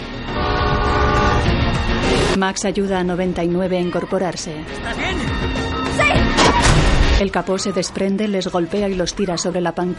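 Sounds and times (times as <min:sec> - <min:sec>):
train horn blaring: 0:00.2 - 0:01.6
speech: 0:02.4 - 0:09.9.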